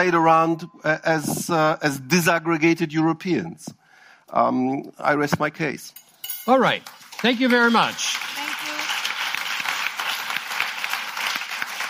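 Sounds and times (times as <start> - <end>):
speech: 0.0 - 8.4
audience applause: 7.0 - 11.8.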